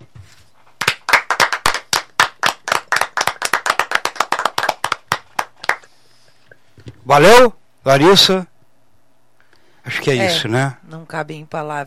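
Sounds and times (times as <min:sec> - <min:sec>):
round of applause: 0:00.8 - 0:06.0
speech: 0:07.1 - 0:08.5, 0:09.9 - 0:11.8.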